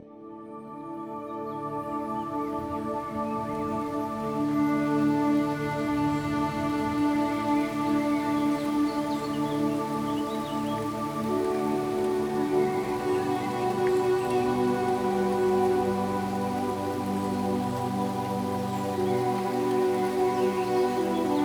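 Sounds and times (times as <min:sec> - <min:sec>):
zen spa rain: 0:00.5 - 0:21.4.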